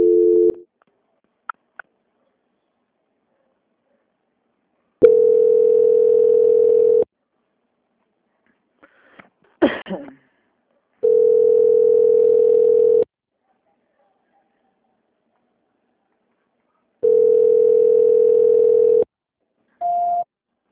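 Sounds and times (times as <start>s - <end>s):
telephone line tone during call transfer: 0.0s - 0.6s, 5.0s - 7.1s, 11.0s - 13.0s, 17.0s - 19.1s.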